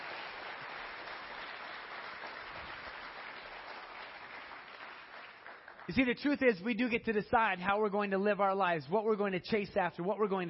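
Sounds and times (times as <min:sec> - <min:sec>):
audience applause: 0:00.0 - 0:06.1
speech: 0:05.9 - 0:10.4.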